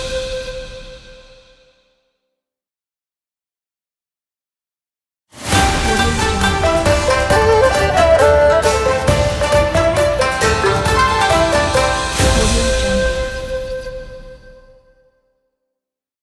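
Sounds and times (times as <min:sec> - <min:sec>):
modern Chinese New Year ident music: 0:05.4 - 0:14.3.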